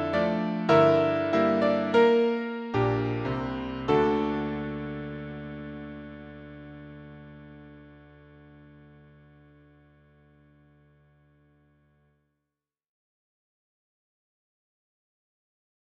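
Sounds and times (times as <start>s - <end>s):
piano melody: 0.0s - 10.2s.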